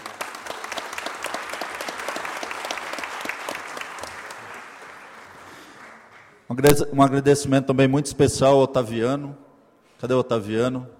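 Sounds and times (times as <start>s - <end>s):
audience applause: 0.0s - 6.5s
speech: 6.5s - 9.4s, 10.0s - 10.9s.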